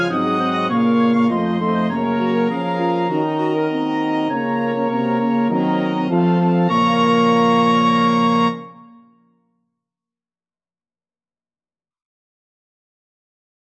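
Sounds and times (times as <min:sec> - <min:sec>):
brass instruments: 0:00.0 - 0:09.0.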